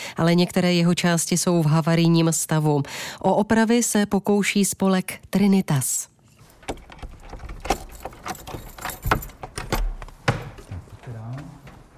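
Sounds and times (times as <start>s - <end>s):
speech: 0.2s - 6.1s
door lock and security grille clicks and clanks: 6.6s - 9.9s
keys jangling and scraping: 6.7s - 9.9s.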